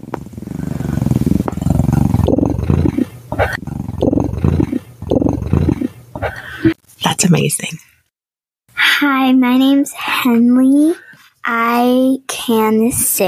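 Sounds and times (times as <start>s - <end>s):
person imitating a cat's purr: 0.0s - 6.7s
speech: 7.2s - 7.9s, 9.0s - 13.2s.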